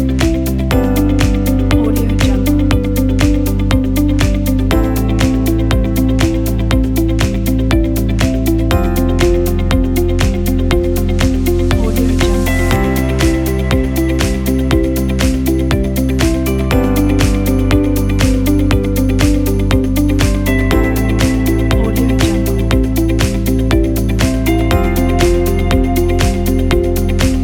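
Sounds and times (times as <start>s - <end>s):
corporate music: 0.0s - 27.4s.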